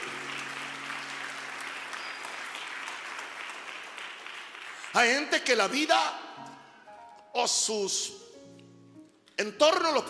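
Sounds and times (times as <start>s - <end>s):
audience applause: 0.0s - 5.2s
speech: 5.0s - 6.2s, 7.4s - 8.3s, 9.4s - 10.0s.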